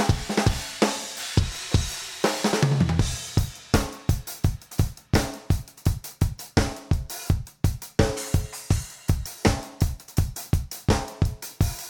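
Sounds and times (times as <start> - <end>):
drums: 0.0 - 11.8.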